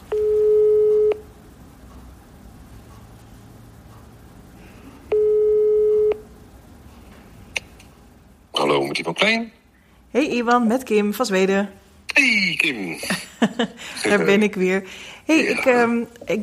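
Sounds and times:
telephone ringing tone during a call: 0:00.1 - 0:01.2, 0:05.1 - 0:06.2
speech: 0:09.0 - 0:16.4.

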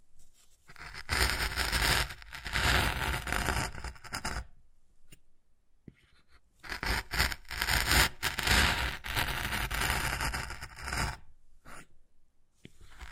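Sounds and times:
wood carving scraping and rasping: 0:00.7 - 0:04.5, 0:06.1 - 0:11.9, 0:12.7 - 0:13.1.

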